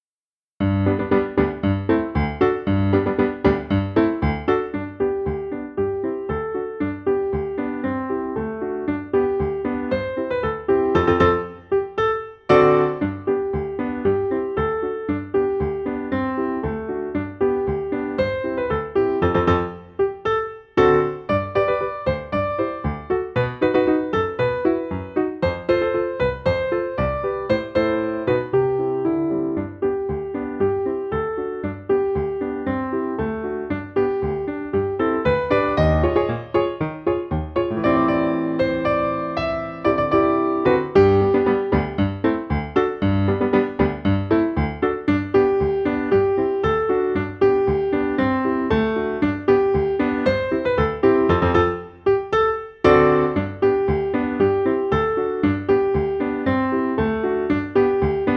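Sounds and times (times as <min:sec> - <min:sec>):
musical accompaniment: 0:00.6 - 0:58.3.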